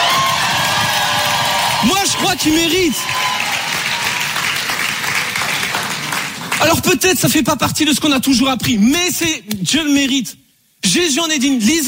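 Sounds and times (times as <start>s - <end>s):
church congregation shouting for joy: 0.0s - 6.3s
speech: 1.8s - 3.2s, 6.6s - 11.8s.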